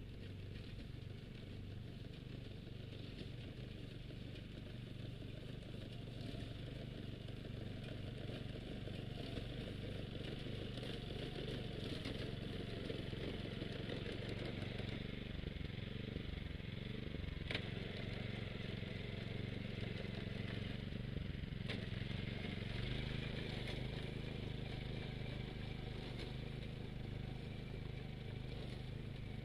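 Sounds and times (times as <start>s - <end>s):
binder rice harvester engine droning in a rice paddy: 0.0s - 29.4s.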